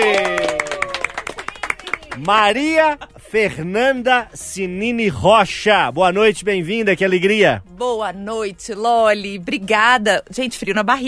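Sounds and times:
audience applause: 0.0s - 2.4s
speech: 2.2s - 11.0s.

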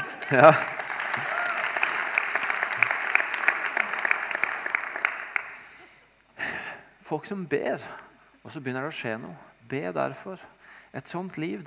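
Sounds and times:
audience clapping: 0.0s - 5.8s
speech: 0.3s - 1.3s, 7.1s - 11.6s.

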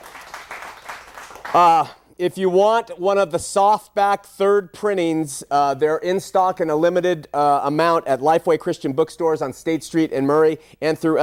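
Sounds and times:
many hands clapping: 0.0s - 2.0s
speech: 1.5s - 11.2s.

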